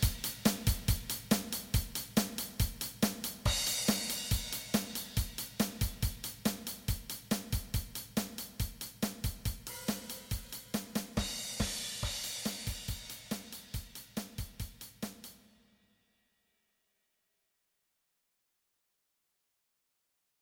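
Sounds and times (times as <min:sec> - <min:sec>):
drums: 0:00.0 - 0:15.7.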